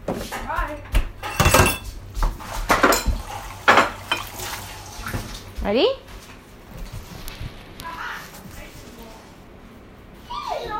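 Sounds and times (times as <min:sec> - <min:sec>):
ceramic bowls clinking as they are passed around: 0:00.8 - 0:04.6
speech: 0:05.7 - 0:06.1.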